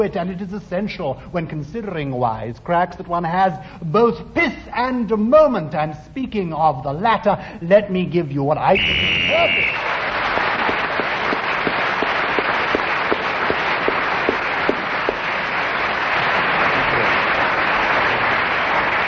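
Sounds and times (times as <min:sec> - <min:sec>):
speech: 0:00.0 - 0:09.9
thunderous round of applause: 0:08.8 - 0:19.0.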